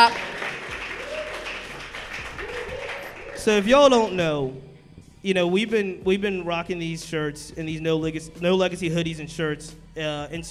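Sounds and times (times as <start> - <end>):
audience clapping: 0.0 - 4.2
speech: 3.4 - 10.4.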